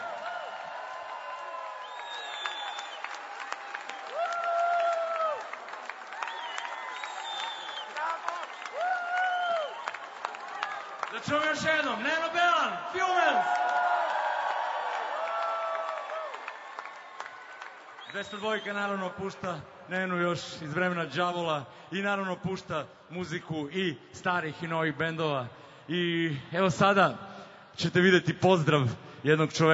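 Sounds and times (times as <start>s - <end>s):
crowd whooping: 0.0s - 10.9s, 13.2s - 18.5s
audience applause for Radio 202: 0.0s - 12.1s, 13.0s - 18.6s
speech: 11.2s - 13.8s, 18.2s - 29.7s.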